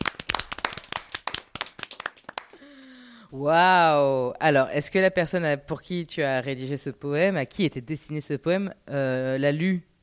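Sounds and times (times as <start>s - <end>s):
crowd of people clapping: 0.0s - 2.8s
speech: 3.3s - 9.9s.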